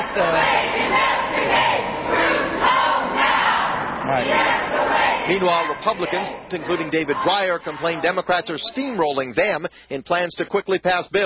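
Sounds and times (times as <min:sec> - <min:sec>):
protesters shouting down a speaker: 0:00.1 - 0:09.0
speech: 0:00.2 - 0:02.2, 0:04.1 - 0:11.2.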